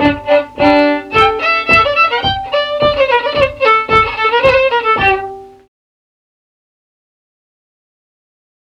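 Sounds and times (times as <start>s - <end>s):
polka music: 0.0s - 5.7s.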